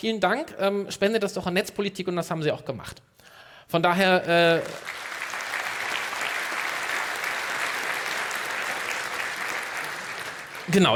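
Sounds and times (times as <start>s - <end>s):
speech: 0.0s - 5.0s, 10.7s - 10.9s
audience applause: 4.4s - 10.9s.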